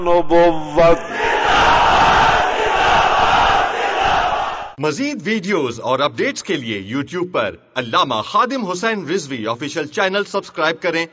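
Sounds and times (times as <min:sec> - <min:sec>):
speech: 0:00.0 - 0:01.8, 0:04.8 - 0:11.1
crowd at a religious gathering shouting a slogan: 0:00.5 - 0:04.8.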